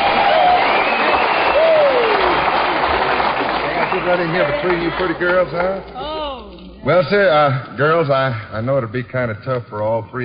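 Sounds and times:
audience applause at the Grand Ole Opry 25th anniversary show: 0.0s - 5.8s
crowd noise: 0.0s - 8.1s
speech: 4.2s - 6.0s, 6.8s - 10.2s.

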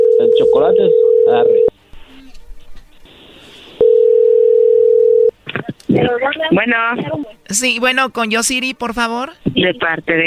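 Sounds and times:
telephone call tone: 0.0s - 1.7s, 3.8s - 5.3s
speech: 0.2s - 1.8s, 6.0s - 10.2s.

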